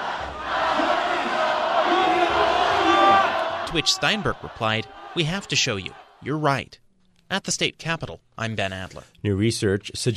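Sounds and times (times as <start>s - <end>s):
crowd chanting a slogan: 0.0s - 6.2s
speech: 3.7s - 10.1s.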